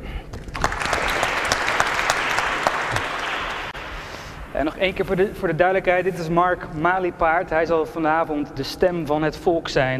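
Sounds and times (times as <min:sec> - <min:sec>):
audience applause: 0:00.4 - 0:04.1
speech: 0:04.6 - 0:09.9.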